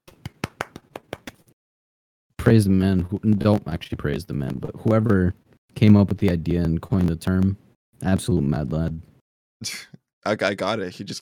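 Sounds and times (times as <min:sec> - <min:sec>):
small round of applause: 0:00.0 - 0:01.6, 0:04.4 - 0:07.5
speech: 0:02.4 - 0:11.2.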